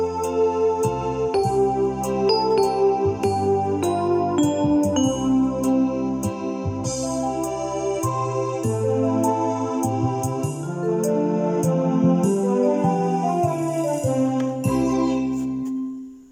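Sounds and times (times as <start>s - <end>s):
electric organ: 0.0s - 16.3s.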